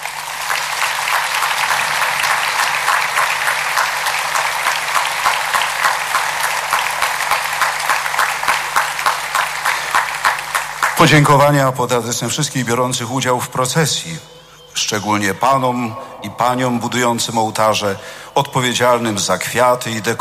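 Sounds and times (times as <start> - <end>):
applause for an orchestra and cathedral choir after a religious procession: 0.0 - 11.4
speech: 11.0 - 20.1.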